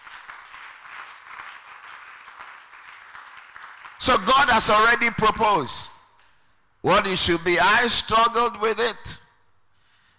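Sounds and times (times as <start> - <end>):
person clapping: 0.0 - 4.2
speech: 4.0 - 5.9, 6.8 - 9.2.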